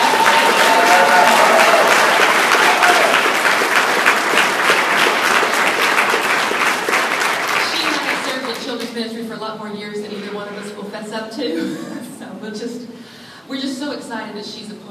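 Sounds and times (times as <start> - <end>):
audience applause: 0.0 - 8.9
speech: 13.5 - 14.8.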